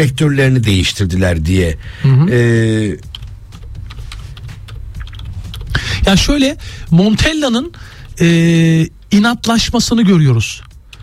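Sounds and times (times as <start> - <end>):
speech: 0.0 - 3.1, 6.0 - 10.7
typing on a computer keyboard: 3.0 - 5.8.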